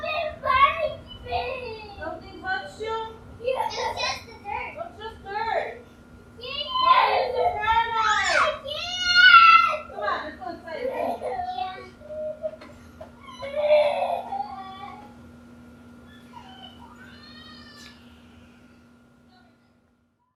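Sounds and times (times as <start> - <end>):
children fighting: 0.0 - 2.2, 3.4 - 4.7, 6.4 - 15.1, 16.1 - 18.8.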